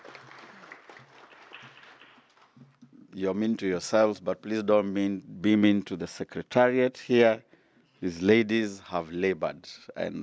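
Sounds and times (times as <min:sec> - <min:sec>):
audience clapping for themselves at the close of an event: 0:00.0 - 0:02.6
speech: 0:03.2 - 0:10.2.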